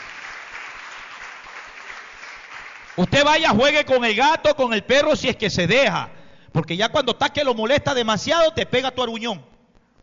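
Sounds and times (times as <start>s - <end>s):
audience applause: 0.0s - 3.4s
speech: 3.0s - 9.5s.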